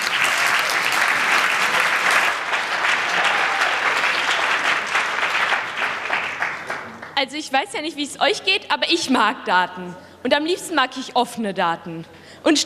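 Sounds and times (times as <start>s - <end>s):
audience applause: 0.0s - 7.2s
speech: 7.2s - 12.6s.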